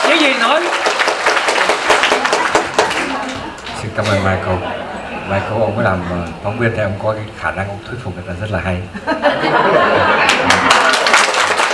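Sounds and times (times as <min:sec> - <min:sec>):
audience clapping at a Vietnamese-language gathering: 0:00.0 - 0:04.2, 0:10.2 - 0:11.7
speech: 0:00.2 - 0:00.8, 0:04.0 - 0:10.8
laughter: 0:04.2 - 0:06.4, 0:08.9 - 0:11.7.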